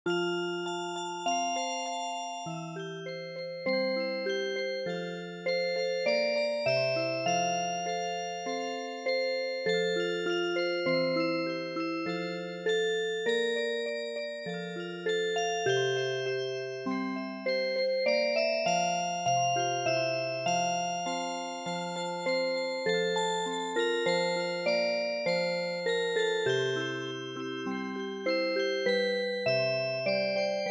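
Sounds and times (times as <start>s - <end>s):
MIDI music box melody: 0.1s - 30.7s.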